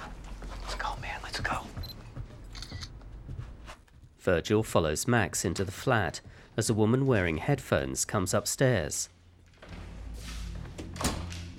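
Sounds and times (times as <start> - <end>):
speech: 4.2 - 9.2
door closing: 10.7 - 11.5.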